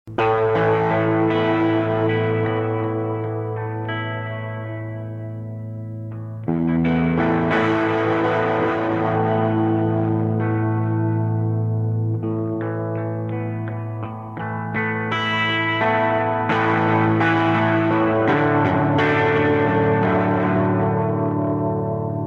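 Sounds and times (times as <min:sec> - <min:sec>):
guitar solo: 0:00.1 - 0:22.2.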